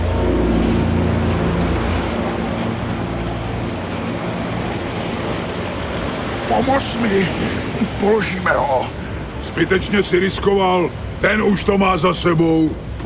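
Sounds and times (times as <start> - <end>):
rough stormy sea waves: 0.0 - 13.0
speech: 6.6 - 12.9.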